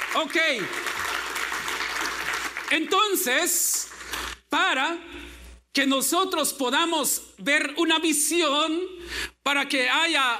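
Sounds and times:
applause: 0.0s - 4.2s
speech: 0.2s - 1.0s, 2.7s - 3.9s, 4.5s - 10.3s.

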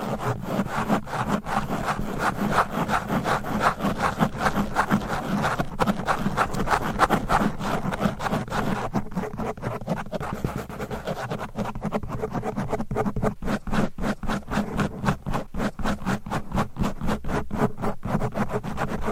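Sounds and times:
microphone scratching with covers and nails: 0.0s - 19.1s.

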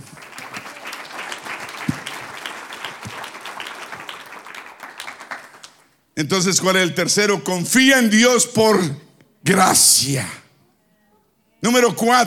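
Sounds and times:
crowd applause: 0.0s - 5.9s
speech: 6.2s - 10.4s, 11.6s - 12.2s.

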